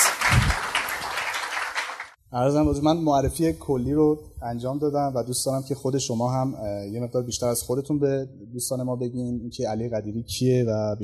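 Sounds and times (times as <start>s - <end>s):
applause: 0.0s - 2.2s
speech: 2.3s - 11.0s.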